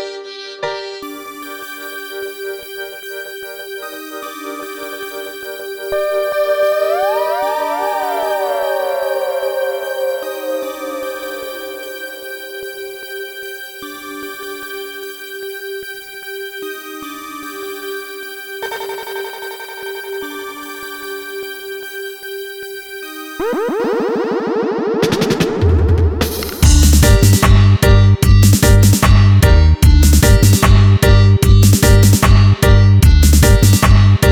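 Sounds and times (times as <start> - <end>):
dub remix music: 6.0 - 13.2, 23.4 - 34.3.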